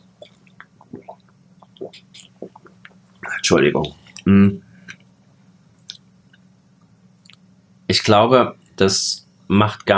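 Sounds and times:
person taking a quick sip of a drink: 0:00.2 - 0:03.0
speech: 0:01.8 - 0:02.2, 0:03.5 - 0:04.7, 0:08.1 - 0:09.9.

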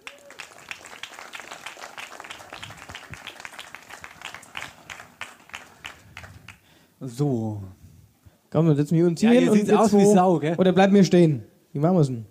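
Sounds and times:
audience applause: 0:00.0 - 0:06.7
speech: 0:07.0 - 0:07.8, 0:08.5 - 0:12.2.

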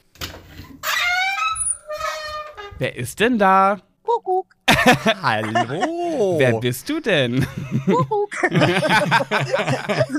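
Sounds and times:
little door creaking open: 0:00.0 - 0:02.9
speech: 0:02.8 - 0:10.1
laughter: 0:04.7 - 0:10.1.

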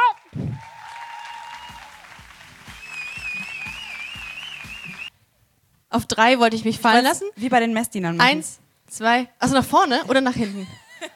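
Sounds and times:
audience applause and cheering at a live stage show: 0:00.0 - 0:05.1
speech: 0:06.0 - 0:10.8.

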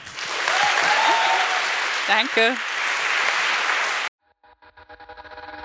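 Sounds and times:
audience applause: 0:00.0 - 0:04.1
speech: 0:02.1 - 0:02.7.

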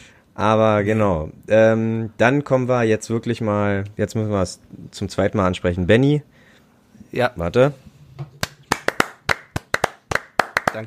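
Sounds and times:
speech: 0:00.4 - 0:06.4, 0:07.1 - 0:08.3
hand clapping: 0:08.4 - 0:10.8.

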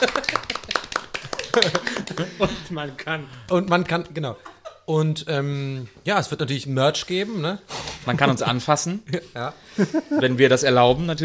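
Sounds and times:
hand clapping: 0:00.0 - 0:02.6
laughter: 0:00.0 - 0:03.0, 0:04.2 - 0:04.9, 0:07.8 - 0:10.6
speech: 0:01.6 - 0:11.2.

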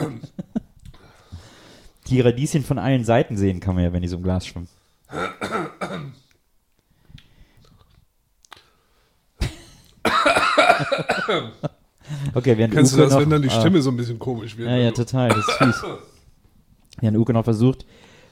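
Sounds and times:
coughing and throat clearing after choking: 0:00.0 - 0:00.6, 0:05.1 - 0:06.3, 0:09.4 - 0:11.8, 0:14.9 - 0:16.2
speech: 0:02.1 - 0:06.1, 0:10.8 - 0:16.1, 0:17.0 - 0:18.1.

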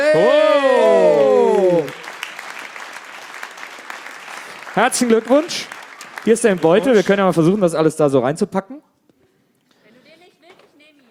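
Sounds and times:
audience applause: 0:00.0 - 0:07.6
speech: 0:00.1 - 0:00.4, 0:04.8 - 0:08.9.

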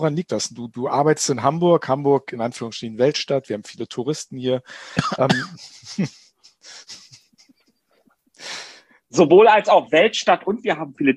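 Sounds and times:
speech: 0:00.0 - 0:07.0, 0:08.4 - 0:11.1
man leaning forward and coughing: 0:04.8 - 0:06.1.

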